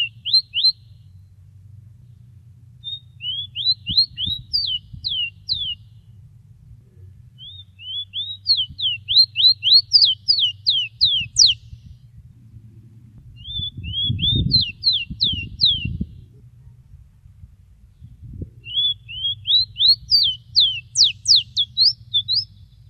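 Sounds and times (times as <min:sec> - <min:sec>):
rowti bird call: 0:00.0 - 0:01.2, 0:02.8 - 0:06.0, 0:07.4 - 0:11.8, 0:13.4 - 0:16.0, 0:18.6 - 0:22.8.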